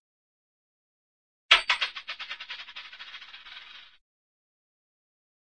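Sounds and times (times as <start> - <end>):
cartoon catapult firing: 1.5 - 2.7.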